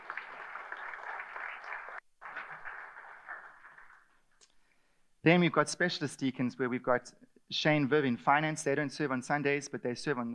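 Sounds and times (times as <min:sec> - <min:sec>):
audience applauding: 0:00.0 - 0:04.3
speech: 0:05.2 - 0:10.3.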